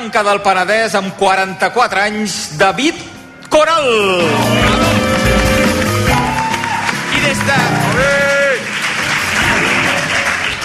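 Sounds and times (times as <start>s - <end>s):
speech: 0.0s - 4.8s
studio audience applause: 4.6s - 10.6s.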